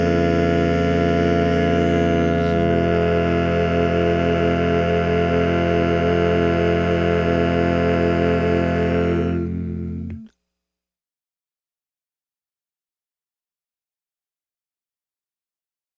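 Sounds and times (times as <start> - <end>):
bass: 0.0 - 10.3.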